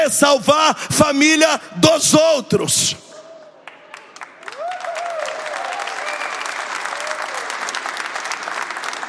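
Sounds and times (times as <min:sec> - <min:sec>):
speech: 0:00.0 - 0:03.1
audience clapping: 0:03.6 - 0:09.0.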